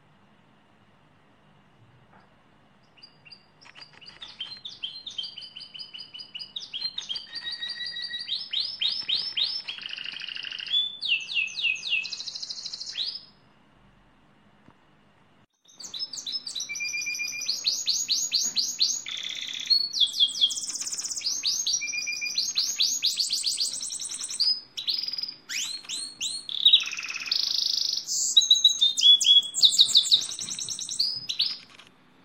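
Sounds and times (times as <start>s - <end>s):
lizard canary singing: 2.8s - 13.4s, 15.6s - 31.8s.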